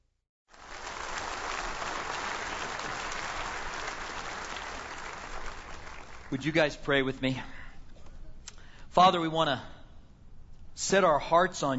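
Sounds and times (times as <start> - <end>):
congregation applauding to welcome a senior pastor: 0.5 - 7.1
speech: 6.3 - 7.6, 9.0 - 9.7, 10.8 - 11.7.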